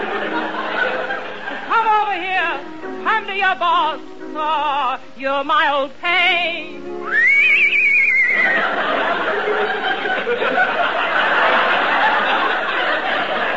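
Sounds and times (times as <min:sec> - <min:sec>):
laughter: 0:00.0 - 0:01.7, 0:08.2 - 0:13.5
speech: 0:03.1 - 0:07.7
horse neighing: 0:07.1 - 0:08.6.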